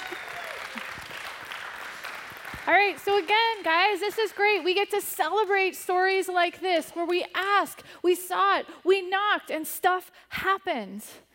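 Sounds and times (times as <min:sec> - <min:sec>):
audience applause at a weekly prayer gathering: 0:00.0 - 0:04.7
speech: 0:02.7 - 0:11.2.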